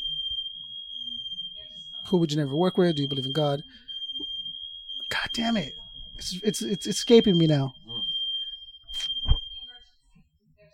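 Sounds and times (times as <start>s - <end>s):
fire alarm sounding from smoke: 0.0s - 9.9s
voices: 0.0s - 10.7s
speech: 2.1s - 3.9s, 5.2s - 7.8s.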